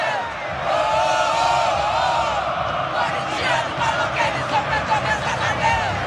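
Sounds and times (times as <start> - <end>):
stadium fans singing a chant: 0.0 - 6.0.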